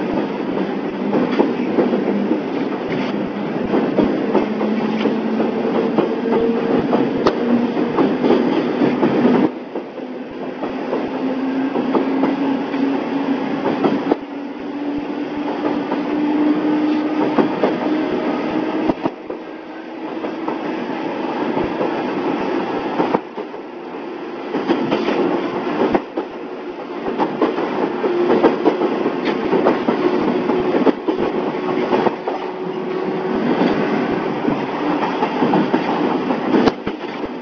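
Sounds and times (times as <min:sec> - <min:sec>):
Joumou Electric Railway DeHa 350 train departing Akagi Station: 0:00.0 - 0:37.4.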